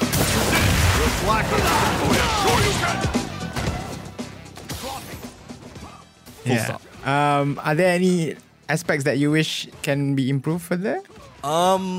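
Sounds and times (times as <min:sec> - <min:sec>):
Street Fighter 6 fighting-game hits and impacts: 0:00.1 - 0:03.0
speech: 0:06.5 - 0:11.9.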